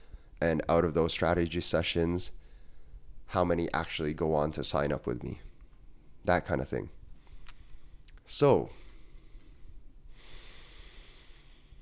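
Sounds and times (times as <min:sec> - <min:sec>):
deep breath: 0:00.0 - 0:00.4, 0:02.4 - 0:03.1, 0:07.2 - 0:08.1, 0:08.7 - 0:11.8
speech: 0:00.4 - 0:02.4, 0:03.3 - 0:05.5, 0:06.2 - 0:07.0, 0:08.3 - 0:08.8.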